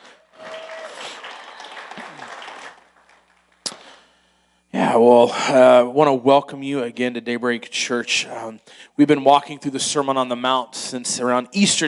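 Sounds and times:
audience applause: 0:00.0 - 0:03.6
speech: 0:04.8 - 0:11.8.

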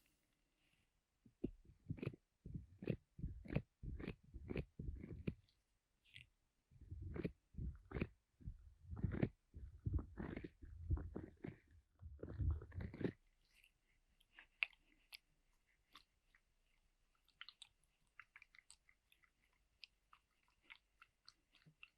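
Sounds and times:
pineapple rubbing and crunching strokes in ear massage: 0:01.4 - 0:05.5, 0:06.1 - 0:15.2.

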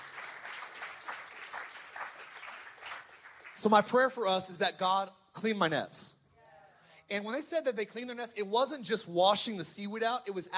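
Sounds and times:
audience hand clapping: 0:00.0 - 0:04.2
speech: 0:03.6 - 0:06.2, 0:07.1 - 0:10.5.

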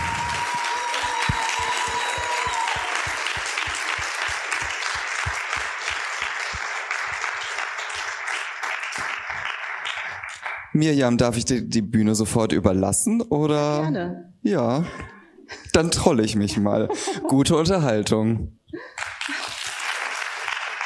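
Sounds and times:
crowd applauding: 0:00.0 - 0:10.8, 0:18.9 - 0:20.8
speech: 0:10.8 - 0:15.1, 0:15.8 - 0:18.6.

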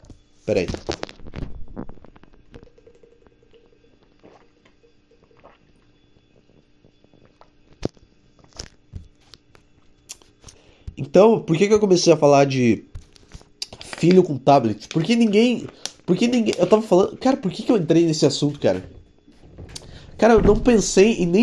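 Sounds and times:
speech: 0:00.5 - 0:01.0, 0:11.2 - 0:12.9, 0:14.0 - 0:19.0, 0:20.2 - 0:21.4
plastic bottle cap twisting open: 0:13.0 - 0:14.2, 0:15.7 - 0:16.8.

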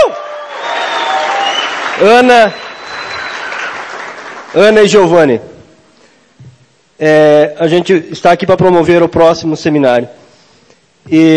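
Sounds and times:
crowd clapping: 0:00.2 - 0:05.1
speech: 0:02.0 - 0:02.6, 0:04.5 - 0:05.5, 0:07.0 - 0:10.2, 0:11.0 - 0:11.3.

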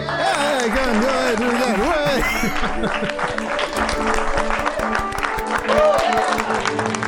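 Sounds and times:
group applause and clapping: 0:00.0 - 0:07.0
speech: 0:02.2 - 0:04.3.

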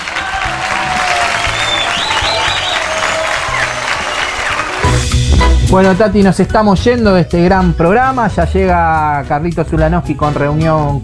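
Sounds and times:
audience applause: 0:00.0 - 0:05.0
speech: 0:05.7 - 0:11.0.

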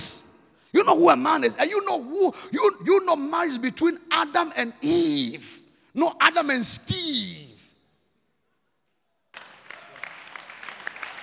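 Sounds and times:
speech: 0:00.9 - 0:07.5
audience clapping: 0:09.3 - 0:11.2.

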